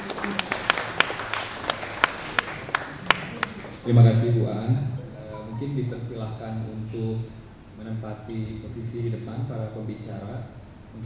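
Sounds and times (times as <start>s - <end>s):
audience clapping at an art talk at Bandung Contemporary Art Award 2019: 0.0s - 3.9s
speech: 3.9s - 5.0s, 5.6s - 11.0s.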